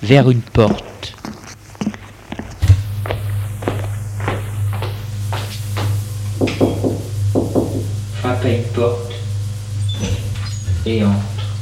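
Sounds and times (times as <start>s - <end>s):
speech: 0.0s - 1.2s, 8.4s - 9.1s, 10.8s - 11.3s
footsteps on hard floor: 0.6s - 6.0s
low hum: 2.6s - 11.6s.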